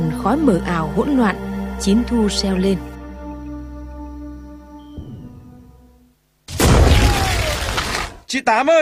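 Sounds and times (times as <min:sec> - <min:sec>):
speech: 0:00.2 - 0:02.9, 0:08.3 - 0:08.8
grenade explosion amid gunfire: 0:06.5 - 0:08.2.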